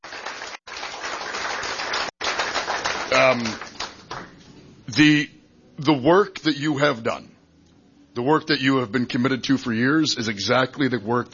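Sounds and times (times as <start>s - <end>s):
audience applause: 0.0s - 4.3s
speech: 3.1s - 3.7s, 5.0s - 7.3s, 8.2s - 11.3s.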